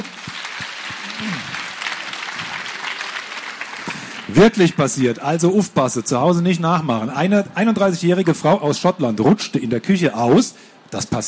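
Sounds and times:
audience applause at a live Black Stories game show: 0.0 - 5.1
speech: 4.3 - 11.2.

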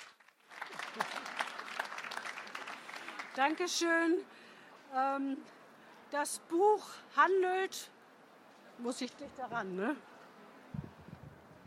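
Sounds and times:
audience applause: 0.0 - 3.5
speech: 3.4 - 8.0, 8.8 - 10.1.

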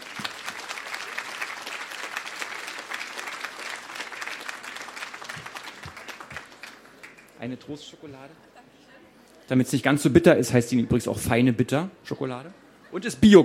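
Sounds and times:
audience applause: 0.0 - 7.4
speech: 7.4 - 8.5, 9.5 - 13.4.

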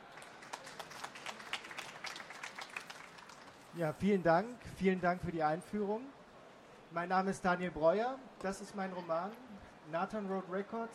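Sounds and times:
audience applause: 0.0 - 3.7
speech: 3.7 - 6.2, 6.9 - 10.9.

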